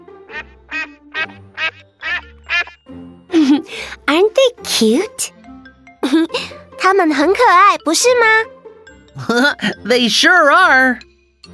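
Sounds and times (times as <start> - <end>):
Call ducks quacking: 0.3 - 2.8
speech: 4.8 - 5.4, 6.2 - 8.6, 9.2 - 11.1.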